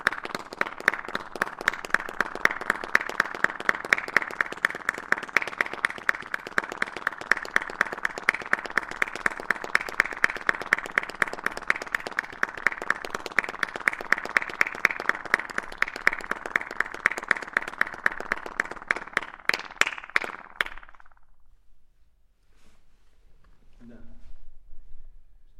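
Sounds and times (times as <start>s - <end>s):
hands clapping: 0.0s - 21.4s.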